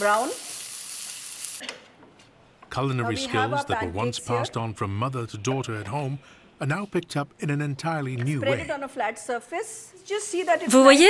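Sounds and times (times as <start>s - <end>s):
speech: 0.0s - 0.5s, 1.6s - 1.9s, 2.7s - 11.0s
onions frying until golden: 0.0s - 1.6s.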